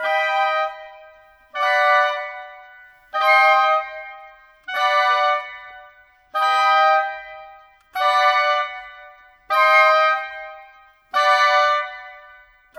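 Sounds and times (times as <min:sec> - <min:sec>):
clarinet: 0:00.0 - 0:12.7
flute: 0:00.0 - 0:12.7.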